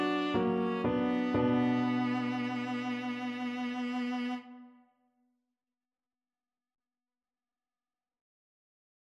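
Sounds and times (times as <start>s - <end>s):
viola: 0.0s - 4.8s.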